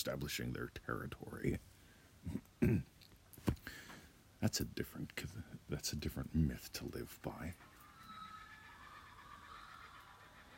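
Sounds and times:
speech: 0.0 - 7.7
kookaburras calling: 7.3 - 10.5.

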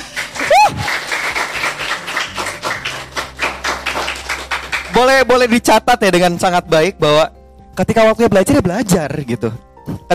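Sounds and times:
several people clapping: 0.0 - 5.7
speech: 5.0 - 10.1.

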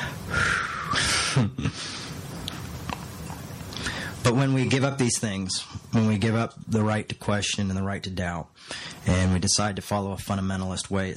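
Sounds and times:
deep breath: 0.0 - 2.2, 3.7 - 4.2, 8.6 - 9.0
speech: 1.4 - 1.6, 4.3 - 11.1.

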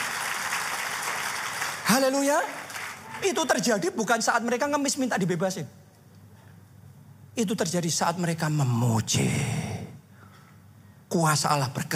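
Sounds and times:
audience applauding: 0.0 - 3.6
speech: 1.9 - 2.6, 3.2 - 5.8, 7.4 - 9.6, 11.1 - 11.9.

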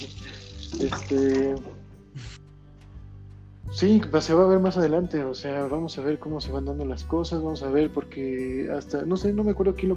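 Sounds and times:
running water while washing fruit: 0.0 - 1.8
speech: 0.8 - 2.3, 3.7 - 9.9.

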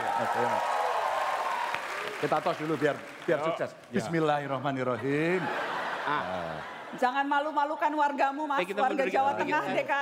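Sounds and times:
crowd applause: 0.0 - 3.8
speech: 0.2 - 0.8, 2.1 - 10.0
laughter: 4.9 - 7.0.

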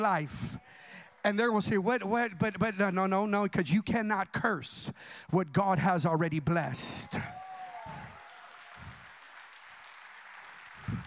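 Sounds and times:
speech: 0.0 - 7.4
faint polite audience clapping: 7.2 - 11.0.

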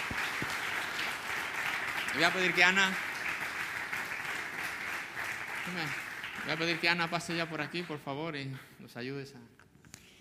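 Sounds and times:
audience applause: 0.0 - 8.0
speech: 2.2 - 3.0, 5.7 - 9.6.

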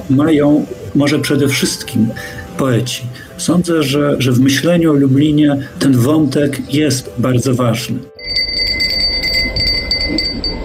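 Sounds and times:
speech: 0.1 - 8.1
small bell ringing as a signal: 8.2 - 10.6.

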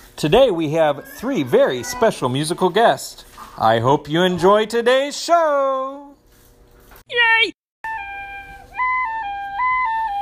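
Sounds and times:
speech: 0.2 - 6.0, 7.1 - 7.5
penny whistle playing: 7.8 - 10.2.

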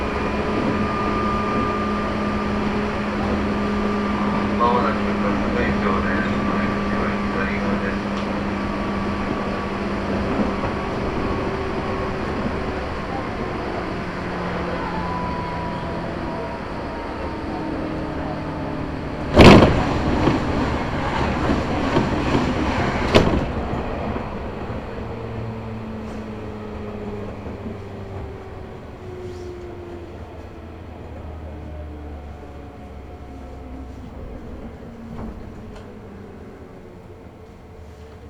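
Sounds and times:
Chuo East Line local train rumbling from Nirasaki to Higashi-Yamanashi: 0.0 - 38.2
sharp loud bangs: 19.3 - 20.5.

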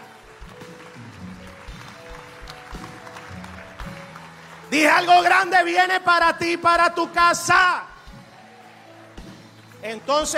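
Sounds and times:
audience applauding: 0.0 - 6.4, 8.0 - 10.3
speech: 4.7 - 7.9, 9.8 - 10.3.

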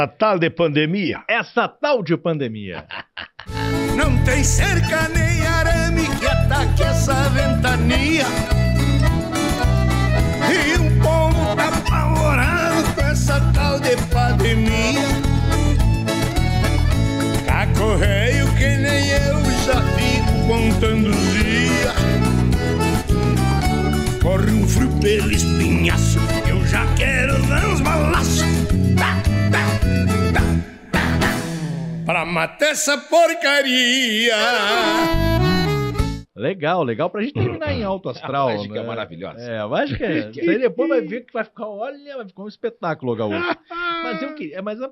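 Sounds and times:
speech: 0.0 - 8.6, 24.4 - 28.4, 32.1 - 35.7, 36.4 - 44.8
laughter: 2.7 - 4.2, 37.4 - 37.9, 43.2 - 44.4
music video song excerpt: 3.5 - 36.2.

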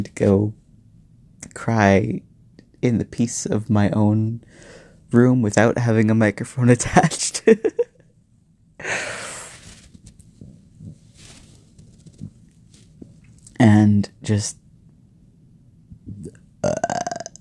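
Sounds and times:
speech: 0.0 - 0.6, 1.5 - 7.8, 13.6 - 14.6, 16.6 - 17.1
burp: 16.2 - 17.3.

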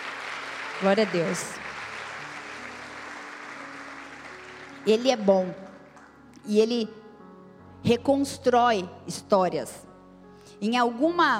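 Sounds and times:
audience applause: 0.0 - 4.9
speech: 0.8 - 1.6, 4.8 - 5.6, 6.4 - 7.0, 7.8 - 9.9, 10.6 - 11.3.

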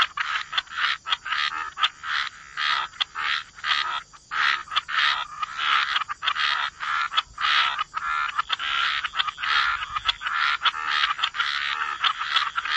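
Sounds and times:
frogs croaking: 0.0 - 12.7.

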